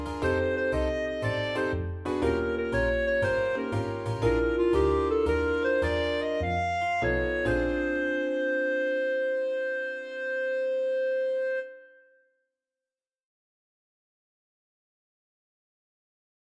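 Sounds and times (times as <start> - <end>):
swing blues combo playing: 0.0 - 11.5.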